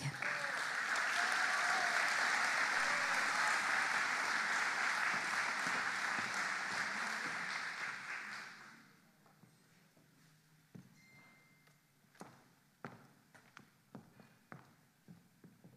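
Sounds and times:
audience applause: 0:00.0 - 0:08.8.

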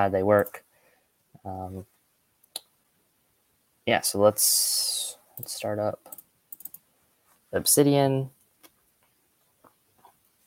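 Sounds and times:
speech: 0:00.0 - 0:00.7, 0:01.4 - 0:01.9, 0:03.9 - 0:06.2, 0:07.5 - 0:08.4
computer mouse right-click: 0:05.4 - 0:06.8.

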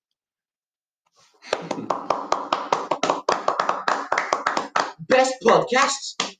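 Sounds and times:
people clapping in a standing ovation: 0:01.4 - 0:06.3
speech: 0:05.1 - 0:06.2.

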